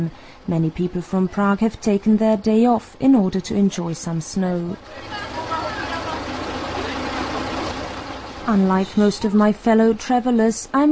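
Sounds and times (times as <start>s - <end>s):
speech: 0.0s - 5.4s, 8.5s - 10.9s
old Karosa bus engine idling at station: 0.0s - 10.4s.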